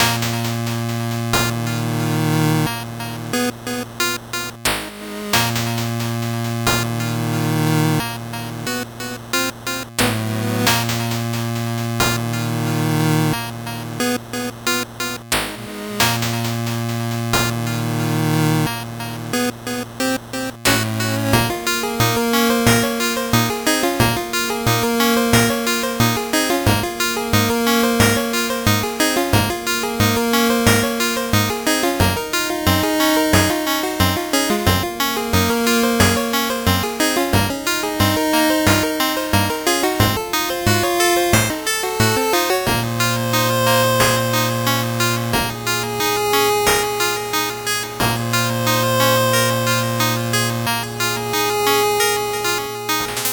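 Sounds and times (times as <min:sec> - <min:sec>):
slow 8-bit background music: 0:00.0 - 0:53.3.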